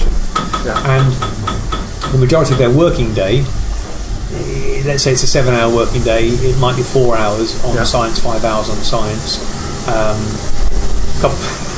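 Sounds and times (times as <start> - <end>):
shower water running: 0.0 - 11.7
speech: 0.6 - 1.4, 2.1 - 3.6, 4.3 - 10.5, 11.2 - 11.6.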